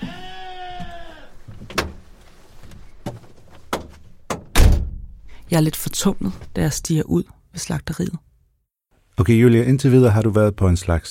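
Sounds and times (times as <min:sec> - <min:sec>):
sheep bleating: 0:00.0 - 0:01.4
sharp knocks and thuds: 0:03.0 - 0:05.2
speech: 0:05.5 - 0:08.3, 0:09.2 - 0:11.1.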